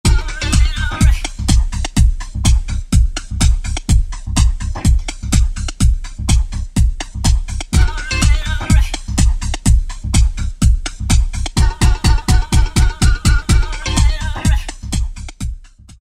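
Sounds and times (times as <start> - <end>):
house music at 125 BPM: 0.0 - 15.9.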